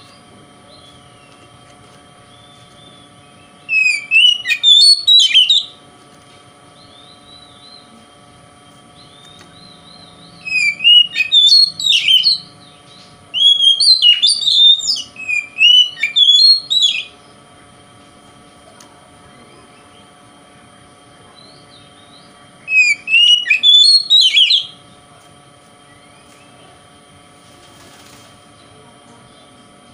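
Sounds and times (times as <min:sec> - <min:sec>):
Oriental magpie-robin song: 0:02.3 - 0:05.8, 0:09.0 - 0:17.2, 0:21.4 - 0:24.8.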